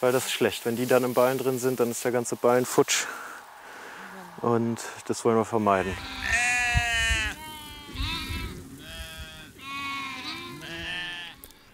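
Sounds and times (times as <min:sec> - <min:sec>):
speech: 0:00.0 - 0:03.3, 0:04.4 - 0:06.4
sheep bleating: 0:05.7 - 0:11.5.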